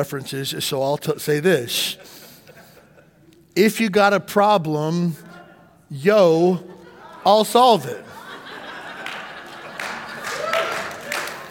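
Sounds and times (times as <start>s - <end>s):
speech: 0.0s - 2.2s, 3.6s - 5.3s, 5.9s - 8.1s
laughter: 1.7s - 3.5s, 5.2s - 11.4s
audience clapping: 8.8s - 11.4s.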